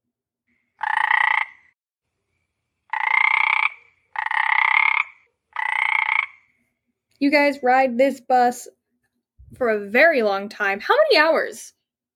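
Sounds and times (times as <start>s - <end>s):
loud buzzy frog croaks: 0.7s - 1.8s, 2.9s - 6.6s
speech: 7.2s - 8.8s, 9.5s - 11.8s.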